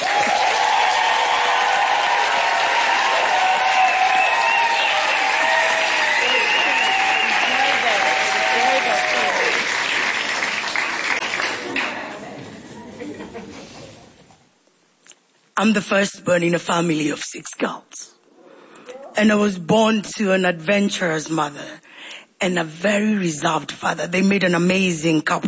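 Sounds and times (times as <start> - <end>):
audience applause welcoming a performer to the stage in Johannesburg: 0.0 - 12.3
laughter: 12.6 - 14.2
speech: 15.6 - 18.1, 19.2 - 21.8, 22.4 - 25.4.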